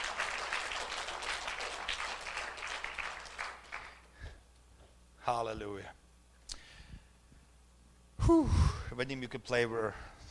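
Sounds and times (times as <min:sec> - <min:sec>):
audience clapping: 0:00.0 - 0:04.1
speech: 0:05.3 - 0:06.0, 0:08.3 - 0:10.1.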